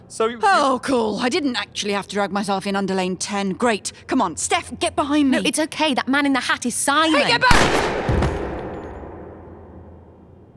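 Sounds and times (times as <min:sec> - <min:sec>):
speech: 0:00.1 - 0:08.2
gunshot fired at a man: 0:07.5 - 0:09.7.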